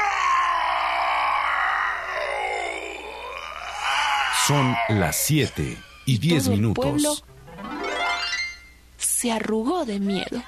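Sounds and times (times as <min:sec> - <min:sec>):
voice imitating an angry ogre roaring: 0:00.0 - 0:07.0
speech: 0:04.5 - 0:07.3, 0:09.2 - 0:10.4.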